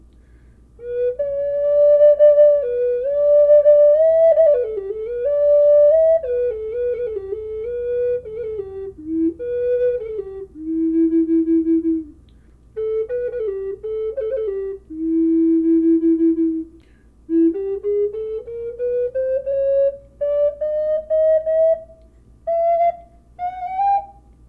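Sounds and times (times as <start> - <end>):
flutes playing in E minor: 0.8 - 24.4.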